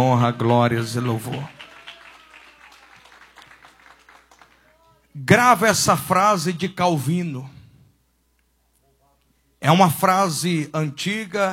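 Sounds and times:
speech: 0:00.0 - 0:01.6, 0:05.2 - 0:07.6, 0:09.6 - 0:11.5
audience applauding: 0:00.0 - 0:05.0.

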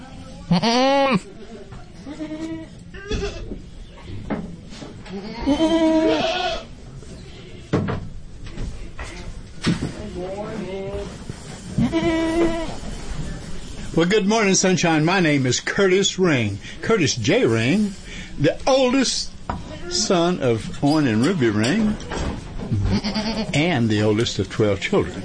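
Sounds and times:
faint voices murmuring: 0:00.0 - 0:14.1, 0:19.3 - 0:25.2
goats bleating at a goat auction: 0:00.5 - 0:01.2, 0:02.0 - 0:03.5, 0:05.1 - 0:06.7, 0:11.8 - 0:12.8, 0:22.8 - 0:23.6
speech: 0:00.5 - 0:01.4, 0:05.1 - 0:06.4, 0:14.0 - 0:19.3, 0:19.9 - 0:22.1, 0:23.0 - 0:25.2
indoor clatter of knocks and thumps: 0:07.7 - 0:08.8.

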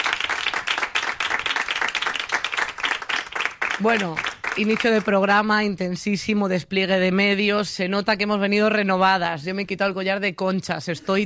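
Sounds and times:
audience applause: 0:00.0 - 0:05.2
speech: 0:03.8 - 0:11.2.

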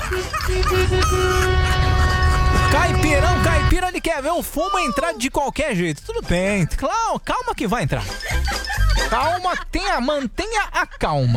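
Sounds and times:
car horns honking in a protest: 0:00.0 - 0:04.2
laughter: 0:00.0 - 0:05.2, 0:06.3 - 0:11.3
speech: 0:03.8 - 0:11.3.

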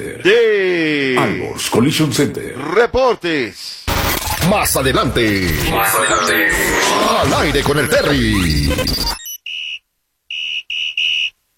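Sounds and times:
speech: 0:00.0 - 0:00.6, 0:01.2 - 0:03.8, 0:04.4 - 0:09.2
shrill whistle blasts: 0:09.2 - 0:11.4.

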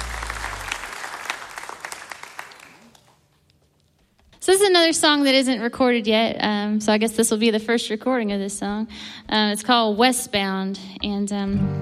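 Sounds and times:
brief low tone: 0:00.0 - 0:00.9
audience applause at a live music show at Mount Stage: 0:00.0 - 0:03.1
speech: 0:04.5 - 0:11.7.

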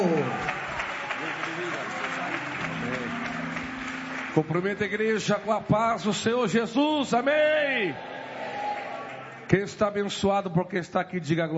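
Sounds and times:
audience applauding: 0:00.0 - 0:06.8, 0:07.9 - 0:09.5
speech: 0:04.4 - 0:08.1, 0:09.5 - 0:11.5.

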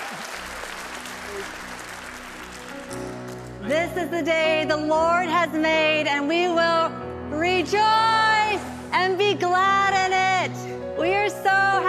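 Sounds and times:
audience clapping: 0:00.0 - 0:03.9
speech: 0:03.7 - 0:11.8.

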